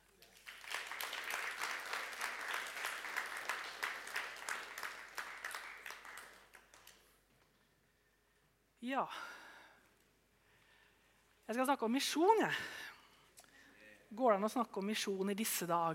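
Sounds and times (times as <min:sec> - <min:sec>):
crowd applause: 0:00.0 - 0:07.0
speech: 0:08.8 - 0:09.4, 0:11.5 - 0:12.8, 0:14.1 - 0:15.9.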